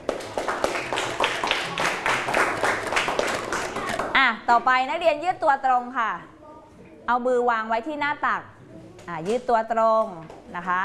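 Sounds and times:
classroom clapping for a student group: 0:00.0 - 0:04.2
speech: 0:04.5 - 0:06.4, 0:07.1 - 0:10.8.

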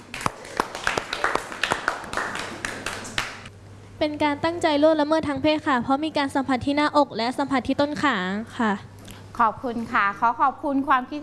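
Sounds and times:
classroom clapping: 0:00.0 - 0:03.5
speech: 0:04.0 - 0:11.2.

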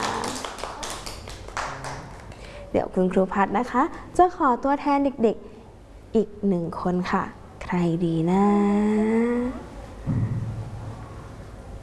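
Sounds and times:
children clapping for a classmate in a classroom: 0:00.0 - 0:02.4
speech: 0:02.8 - 0:05.5, 0:06.1 - 0:10.4.

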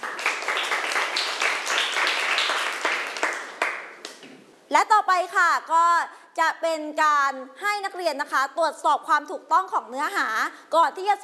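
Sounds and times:
classmates applauding: 0:00.0 - 0:04.4
speech: 0:04.7 - 0:11.2.

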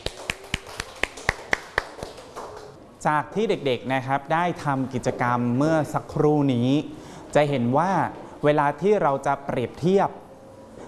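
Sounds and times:
children in a classroom clapping for a classmate: 0:00.0 - 0:02.8
speech: 0:03.0 - 0:10.2.

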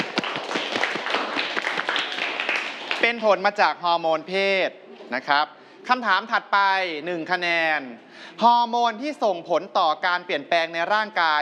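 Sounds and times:
students clapping in a classroom: 0:00.0 - 0:03.3
speech: 0:03.1 - 0:11.4.

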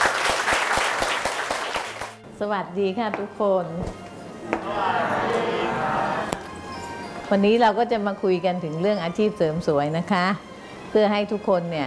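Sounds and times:
audience clapping: 0:00.0 - 0:02.2
speech: 0:02.4 - 0:06.1, 0:07.3 - 0:11.8.

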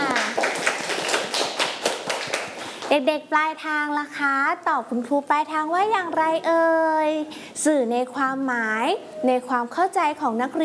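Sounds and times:
schoolchildren clapping in a classroom: 0:00.0 - 0:03.0
speech: 0:02.9 - 0:10.6.

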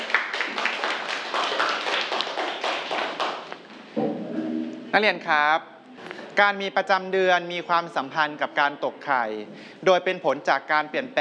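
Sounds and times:
students clapping: 0:00.0 - 0:03.6
speech: 0:04.9 - 0:05.7, 0:06.4 - 0:11.1.

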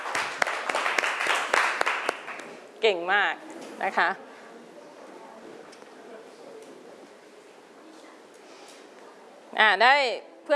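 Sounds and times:
classroom children clapping: 0:00.0 - 0:02.6
speech: 0:02.8 - 0:04.3, 0:09.6 - 0:10.5.

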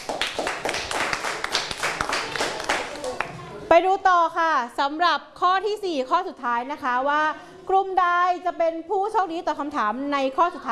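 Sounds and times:
group clapping for students: 0:00.0 - 0:03.4
speech: 0:03.7 - 0:10.7.

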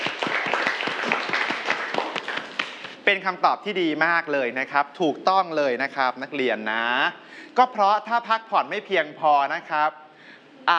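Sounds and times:
students clapping for a classmate in a classroom: 0:00.0 - 0:03.0
speech: 0:03.1 - 0:10.0.

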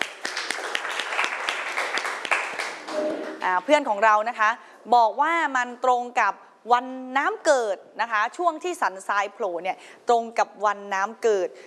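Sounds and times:
classroom applause: 0:00.0 - 0:03.4
speech: 0:03.4 - 0:11.6.

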